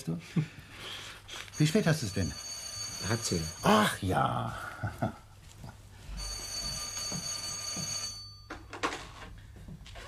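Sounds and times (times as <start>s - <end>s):
speech: 0.0s - 0.6s, 1.6s - 5.2s
telephone bell ringing: 1.5s - 4.0s, 6.0s - 8.9s.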